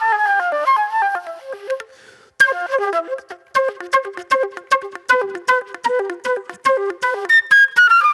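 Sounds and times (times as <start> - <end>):
old soul flute music: 0.0 - 8.1.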